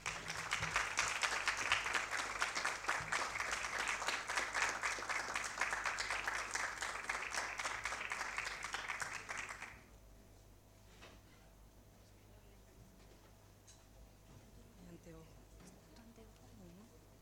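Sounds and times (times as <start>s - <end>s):
audience applause: 0.0s - 9.8s.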